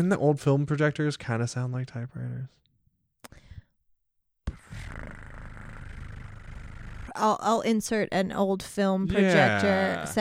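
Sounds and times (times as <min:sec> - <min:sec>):
speech: 0:00.0 - 0:03.4, 0:07.2 - 0:10.2
breathy vocal noise: 0:04.5 - 0:07.2
person imitating cat purring: 0:04.5 - 0:07.4.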